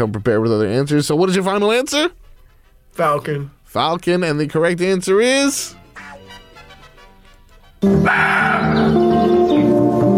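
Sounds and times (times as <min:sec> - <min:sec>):
speech: 0:00.0 - 0:02.2, 0:03.0 - 0:06.1, 0:07.8 - 0:09.5
roe deer call: 0:07.9 - 0:09.5.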